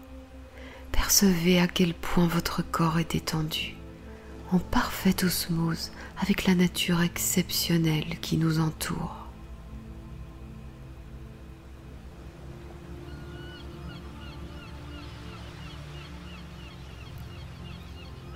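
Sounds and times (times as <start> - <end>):
speech: 1.1 - 3.8, 4.5 - 9.2
gulls calling: 12.8 - 18.3.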